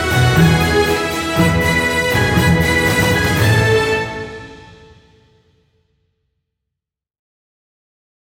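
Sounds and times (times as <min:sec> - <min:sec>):
brave parade background music: 0:00.0 - 0:05.4.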